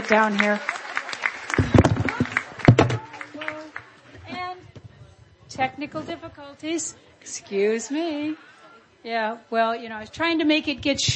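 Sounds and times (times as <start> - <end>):
audience applause: 0.0 - 4.1
speech: 0.1 - 0.8, 5.6 - 11.1
murmuring voices: 0.1 - 11.1.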